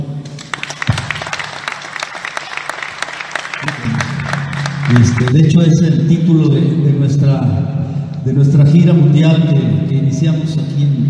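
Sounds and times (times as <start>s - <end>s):
audience clapping: 0.2s - 5.6s
low hum: 3.6s - 11.0s
speech: 4.9s - 11.0s.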